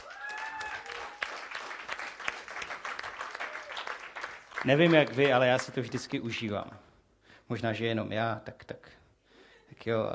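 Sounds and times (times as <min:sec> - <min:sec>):
audience applause: 0:00.0 - 0:06.2
speech: 0:04.6 - 0:06.9, 0:07.5 - 0:08.9, 0:09.8 - 0:10.1.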